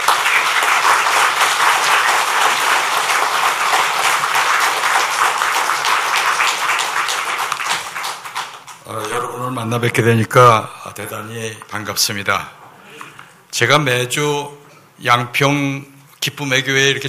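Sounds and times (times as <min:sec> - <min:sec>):
applause: 0:00.0 - 0:08.9
speech: 0:09.6 - 0:12.6, 0:13.6 - 0:17.0.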